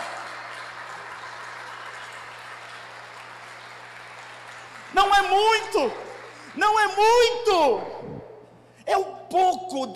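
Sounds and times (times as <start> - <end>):
audience applause: 0.0 - 6.9
speech: 4.9 - 6.0, 6.6 - 7.9, 8.9 - 9.9.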